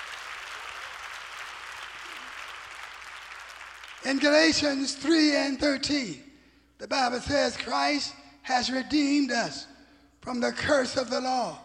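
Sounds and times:
audience clapping hands: 0:00.0 - 0:04.6
speech: 0:04.0 - 0:11.6.

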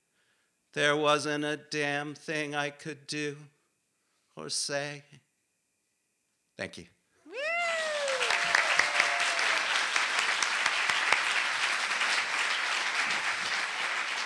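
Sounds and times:
speech: 0:00.7 - 0:03.6, 0:04.4 - 0:05.2, 0:06.6 - 0:07.0
high voice-like whoop: 0:07.3 - 0:10.1
audience applause after a song: 0:07.3 - 0:14.2.

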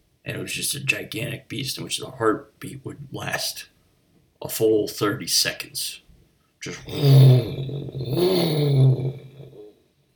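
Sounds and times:
speech: 0:00.3 - 0:03.8, 0:04.4 - 0:06.0, 0:06.6 - 0:09.0
voice imitating a whirring top: 0:06.7 - 0:09.7.

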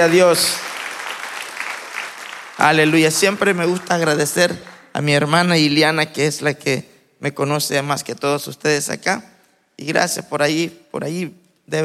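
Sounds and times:
speech: 0:00.0 - 0:00.7, 0:02.6 - 0:11.8
audience applauding: 0:00.0 - 0:05.0.

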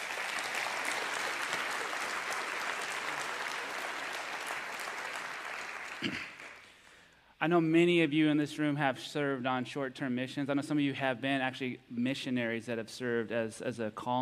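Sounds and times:
audience applause welcoming a couple at a missions gathering: 0:00.0 - 0:06.7
speech: 0:06.0 - 0:06.3, 0:07.4 - 0:14.1.

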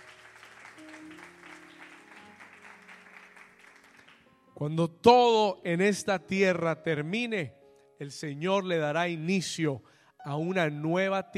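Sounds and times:
audience applause: 0:00.0 - 0:04.3
speech: 0:04.6 - 0:11.3.

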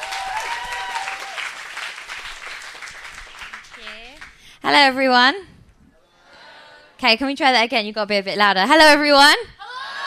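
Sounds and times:
audience applause: 0:00.0 - 0:04.4
speech: 0:04.7 - 0:05.5, 0:07.0 - 0:09.6.

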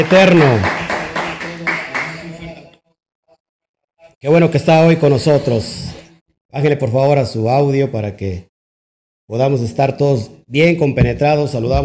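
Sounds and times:
speech: 0:00.0 - 0:00.8, 0:04.2 - 0:08.5, 0:09.3 - 0:11.8
audience applause: 0:00.0 - 0:02.4.

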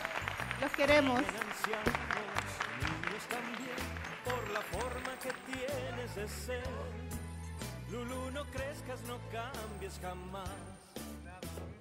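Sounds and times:
applause: 0:00.0 - 0:06.7
speech: 0:00.6 - 0:02.4, 0:03.2 - 0:07.2, 0:07.9 - 0:10.9.

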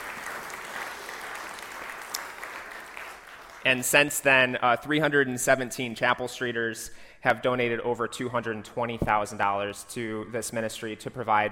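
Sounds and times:
audience applause: 0:00.0 - 0:03.8
speech: 0:03.6 - 0:11.5.

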